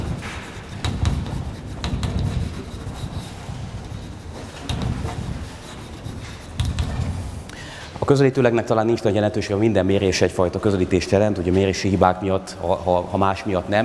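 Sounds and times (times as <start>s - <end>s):
handwriting scratching across a surface in a lecture: 0.0s - 7.3s
speech: 8.1s - 13.8s.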